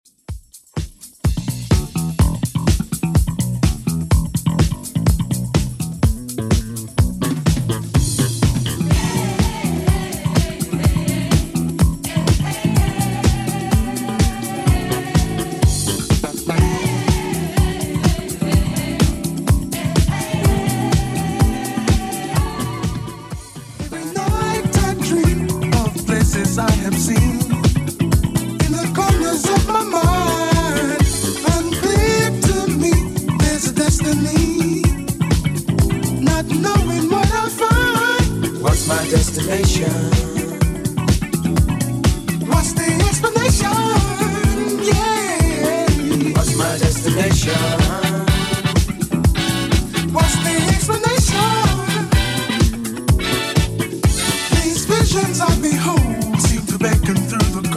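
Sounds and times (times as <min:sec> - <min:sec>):
1980s 125 BPM retro electronic music: 0:01.6 - 0:57.7.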